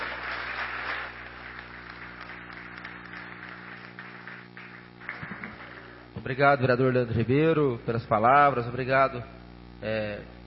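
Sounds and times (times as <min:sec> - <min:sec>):
applause: 0:00.0 - 0:06.0
speech: 0:06.2 - 0:10.4.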